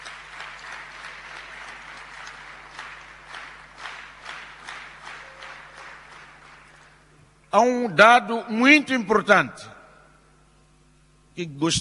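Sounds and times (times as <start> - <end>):
crowd applause: 0.0 - 7.1
speech: 7.5 - 9.8, 11.4 - 11.7.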